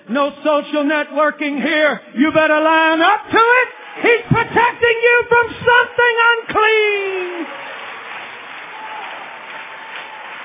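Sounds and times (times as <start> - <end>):
speech: 0.1 - 7.7
audience clapping: 3.4 - 10.4.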